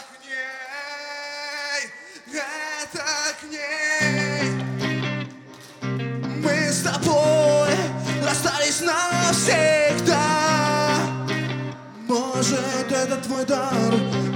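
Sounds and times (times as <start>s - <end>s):
live acoustic music: 4.0s - 14.3s.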